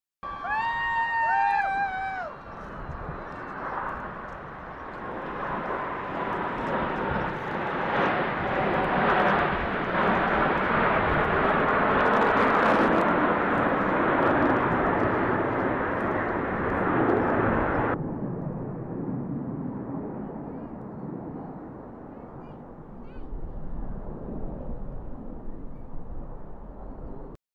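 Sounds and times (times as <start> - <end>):
children shouting: 0.2 - 3.2
crowd cheering: 0.2 - 4.2
Blue Angels jets flying over Houston: 0.2 - 27.4.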